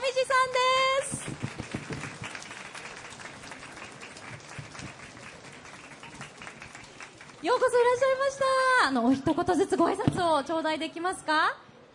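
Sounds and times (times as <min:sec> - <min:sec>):
applause welcoming guests: 0:00.0 - 0:08.1
speech: 0:07.4 - 0:11.6.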